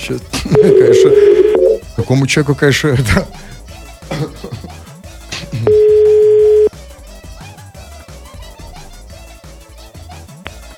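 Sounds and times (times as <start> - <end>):
speech: 0.0 - 1.4, 2.0 - 3.6
music: 0.0 - 10.7
telephone dial tone while calling someone: 0.6 - 1.8, 5.7 - 6.7.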